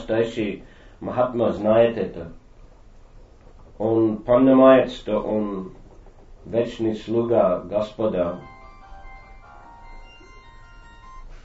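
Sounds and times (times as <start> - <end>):
speech: 0.1 - 2.4, 3.8 - 5.8, 6.4 - 8.5
mobile phone ringing: 8.4 - 11.4.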